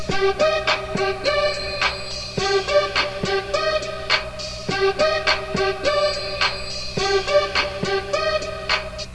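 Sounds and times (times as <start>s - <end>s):
music loop: 0.0s - 9.1s.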